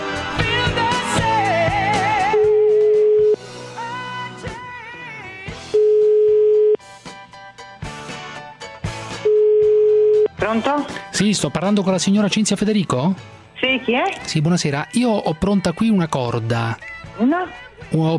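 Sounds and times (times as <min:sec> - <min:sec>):
busy music: 0:00.0 - 0:18.1
phone ringback tone during an outgoing call: 0:02.3 - 0:03.4, 0:05.7 - 0:06.8, 0:09.2 - 0:10.4
speech: 0:10.6 - 0:18.1.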